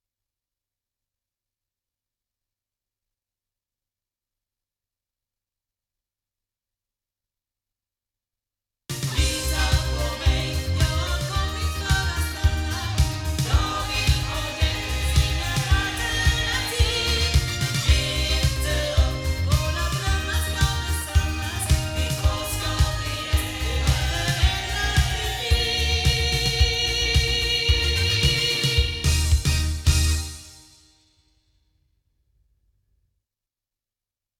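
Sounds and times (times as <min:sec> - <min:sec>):
loudspeakers: 0:09.0 - 0:30.0.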